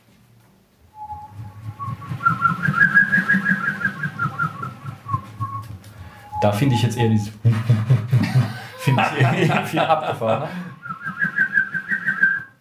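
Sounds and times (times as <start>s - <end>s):
wavering whistling tone blown through a small tube: 0.8s - 8.2s, 10.7s - 12.5s
speech: 6.4s - 8.0s, 8.9s - 10.7s
laughter: 8.1s - 11.0s.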